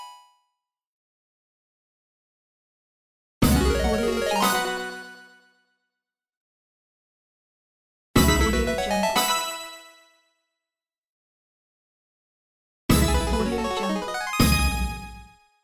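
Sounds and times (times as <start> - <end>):
casino slot machine bonus and jackpot: 3.6 - 5.0, 8.3 - 9.7, 13.0 - 15.2.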